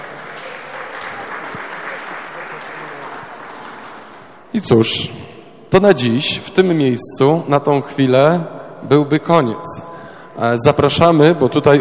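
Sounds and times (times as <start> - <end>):
audience applause: 0.0 - 4.4
speech: 4.6 - 11.7.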